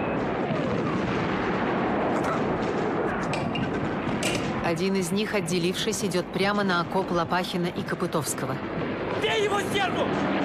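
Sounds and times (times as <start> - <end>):
bombs exploding in battle: 0.0 - 4.8
speech: 4.7 - 10.4.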